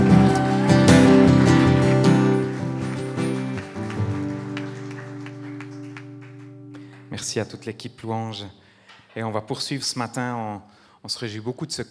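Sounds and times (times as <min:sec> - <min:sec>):
sustained keyboard chords: 0:00.0 - 0:07.2
crowd applauding: 0:00.0 - 0:07.5
speech: 0:07.3 - 0:08.6, 0:09.2 - 0:11.8.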